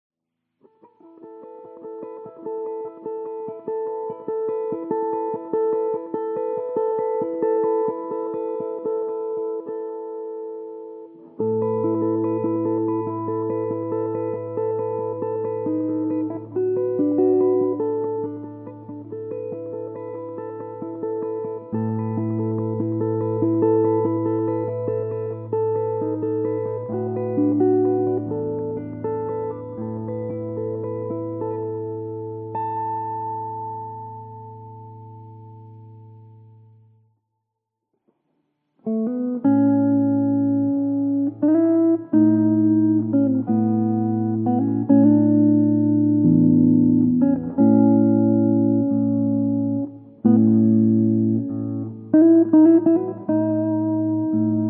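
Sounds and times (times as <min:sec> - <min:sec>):
solo guitar cover: 0:00.5 - 0:37.1, 0:38.8 - 0:54.6.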